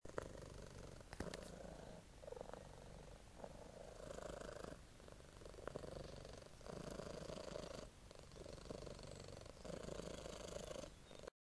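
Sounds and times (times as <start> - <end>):
contented cat purring: 0.1 - 11.3.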